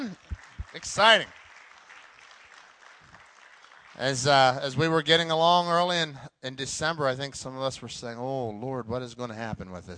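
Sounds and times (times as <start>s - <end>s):
speech: 0.0s - 1.4s, 4.0s - 9.9s
audience applause: 0.0s - 4.8s.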